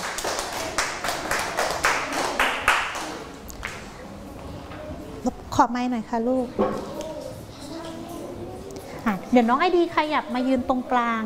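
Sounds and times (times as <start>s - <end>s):
classroom clapping: 0.0s - 3.8s
speech: 5.2s - 6.9s, 9.3s - 11.2s.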